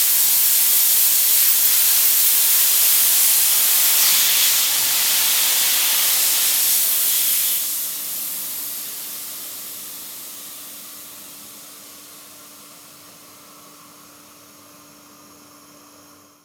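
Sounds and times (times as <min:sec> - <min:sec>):
sandblaster: 0:00.0 - 0:09.4.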